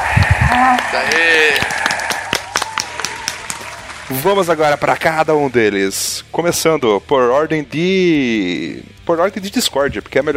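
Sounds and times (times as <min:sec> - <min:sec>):
audience applause: 0:00.0 - 0:05.7
speech: 0:00.7 - 0:01.7, 0:04.1 - 0:10.3.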